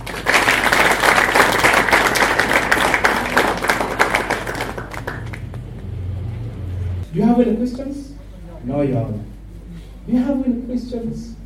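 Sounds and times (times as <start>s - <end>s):
audience applause welcoming a speaker: 0.0s - 6.2s
speech: 7.4s - 9.3s, 10.1s - 11.4s.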